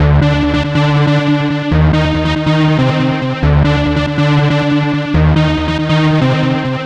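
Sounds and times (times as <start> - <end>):
NRG synth pad: 0.0 - 6.8.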